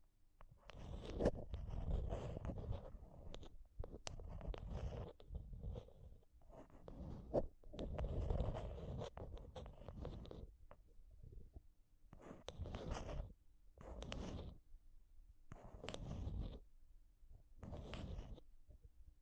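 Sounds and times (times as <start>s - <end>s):
rough scraping and rubbing on a microphone: 0.6s - 11.6s, 12.2s - 14.6s, 15.5s - 16.6s, 17.6s - 18.4s.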